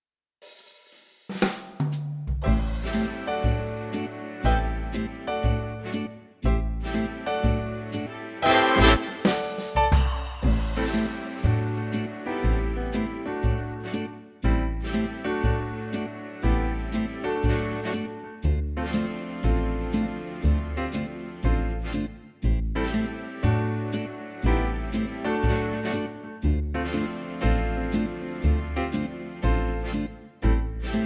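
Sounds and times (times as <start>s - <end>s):
fully orchestrated classic big band backing track in A minor: 1.5s - 6.1s, 6.7s - 14.2s, 14.8s - 22.1s, 22.8s - 30.1s, 30.8s - 31.0s.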